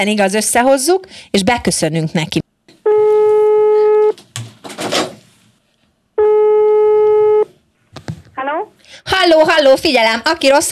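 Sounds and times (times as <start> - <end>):
speech: 0.0 - 2.4, 9.6 - 10.6
telephone call ringing tone: 2.9 - 4.2, 6.2 - 7.5.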